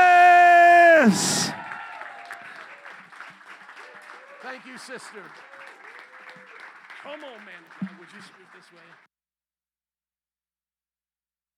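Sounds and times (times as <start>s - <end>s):
church service audience applause welcoming a speaker: 0.0s - 9.1s
speech: 1.0s - 1.4s, 4.6s - 5.6s, 7.0s - 9.1s.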